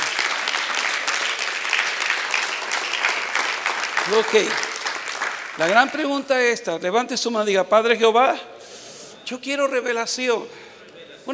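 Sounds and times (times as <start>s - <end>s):
audience applause: 0.0s - 6.2s
speech: 4.1s - 4.7s, 5.6s - 8.5s, 9.3s - 10.6s.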